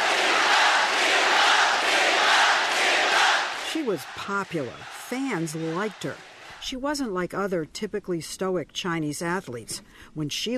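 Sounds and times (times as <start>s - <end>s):
crowd cheering wildly: 0.0s - 6.7s
speech: 3.9s - 10.5s.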